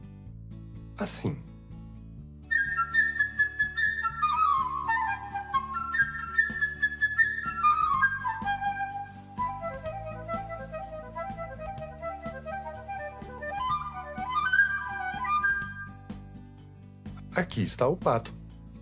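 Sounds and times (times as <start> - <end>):
speech: 1.0 - 1.5, 17.6 - 18.4
flute playing a melody: 2.5 - 16.0.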